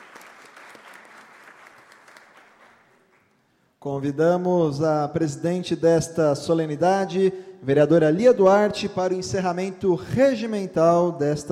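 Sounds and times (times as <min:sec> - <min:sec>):
audience applause: 0:00.0 - 0:03.2
speech: 0:03.8 - 0:11.5.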